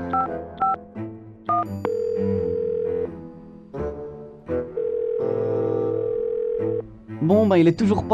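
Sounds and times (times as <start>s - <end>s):
telephone number being dialed on a keypad: 0.1s - 0.8s
speech: 0.2s - 1.1s, 7.4s - 8.1s
sustained telephone tones: 1.5s - 3.1s, 4.8s - 6.8s.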